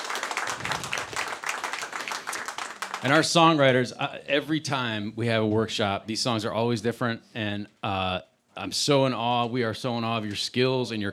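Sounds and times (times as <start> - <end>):
audience applause for workshop musicians: 0.0 - 3.4
speech: 3.0 - 11.1.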